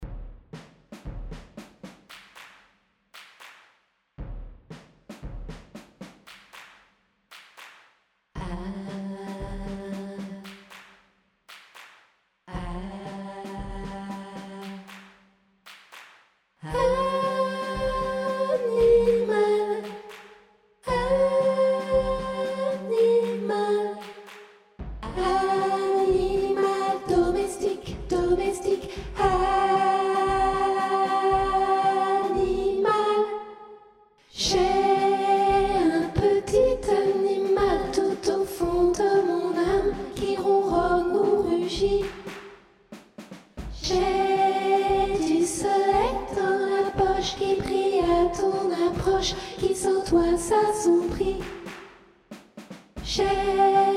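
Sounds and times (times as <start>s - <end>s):
soprano singing: 16.6s - 20.1s, 20.9s - 24.1s, 25.0s - 33.5s, 34.3s - 42.1s, 43.8s - 51.4s, 53.1s - 53.9s.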